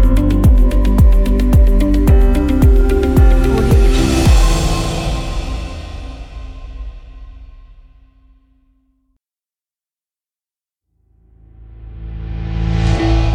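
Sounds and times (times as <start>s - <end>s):
summer ambient upbeat pop music: 0.0s - 6.8s.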